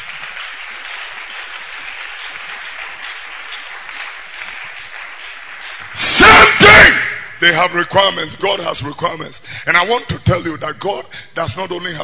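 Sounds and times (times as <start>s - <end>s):
audience clapping: 0.0s - 7.4s
speech: 7.4s - 12.0s.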